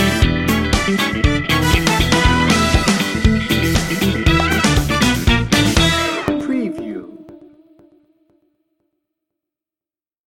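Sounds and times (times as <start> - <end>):
funk music: 0.0 - 8.1.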